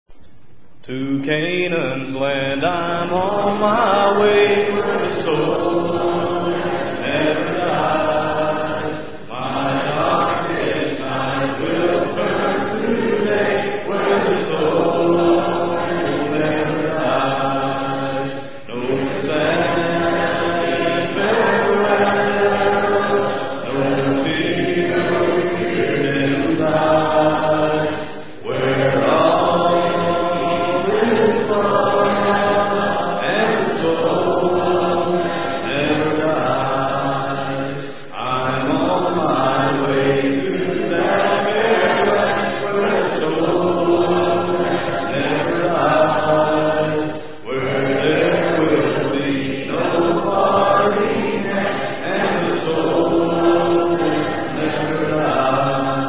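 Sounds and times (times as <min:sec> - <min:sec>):
a cappella hymn: 0:00.1 - 0:56.0.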